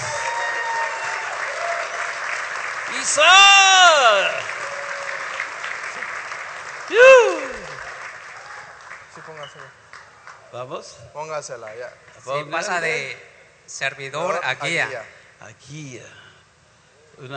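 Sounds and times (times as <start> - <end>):
audience applause: 0.0 - 10.4
speech: 3.0 - 4.6, 6.9 - 7.4, 10.5 - 16.2, 17.2 - 17.3.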